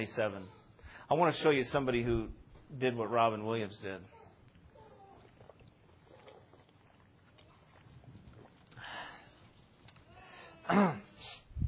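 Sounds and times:
speech: 0.0s - 4.2s, 10.7s - 11.0s
speaker drinking water: 4.4s - 10.4s.

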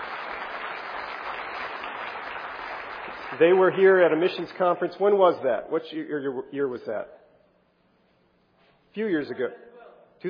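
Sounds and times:
church congregation applauding a visiting missionary family from Mauritius: 0.0s - 4.6s
speech: 3.3s - 7.2s, 9.0s - 10.2s.

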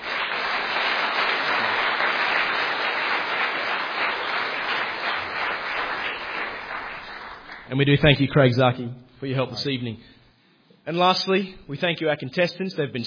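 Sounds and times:
crowd applause: 0.0s - 7.8s
speech: 7.7s - 10.1s, 10.9s - 13.0s.

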